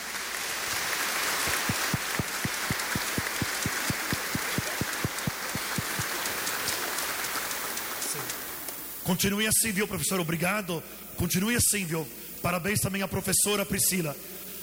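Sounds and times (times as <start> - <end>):
audience applause in church: 0.0 - 8.7
speech: 9.1 - 14.4.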